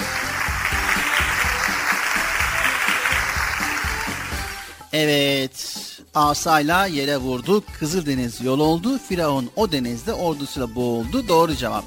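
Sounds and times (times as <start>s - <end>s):
group applauding: 0.0s - 4.8s
speech: 4.9s - 11.8s.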